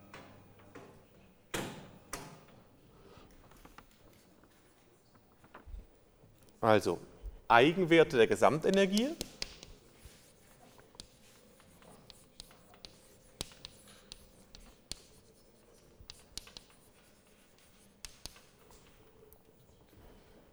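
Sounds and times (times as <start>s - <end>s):
speech: 6.6s - 9.3s
handwriting scratching as the Schrödinger equation is written: 6.6s - 19.7s
light taps: 7.2s - 19.4s.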